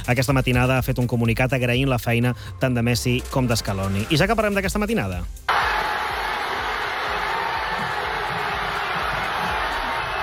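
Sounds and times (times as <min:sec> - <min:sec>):
speech: 0:00.1 - 0:05.5
large crowd shouting celebrating a football win: 0:05.5 - 0:10.2
whoops: 0:05.5 - 0:10.2.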